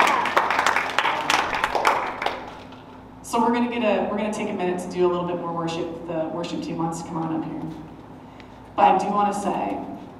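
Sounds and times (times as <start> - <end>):
audience clapping hands: 0.0 - 2.9
speech: 3.3 - 7.9, 8.8 - 9.9.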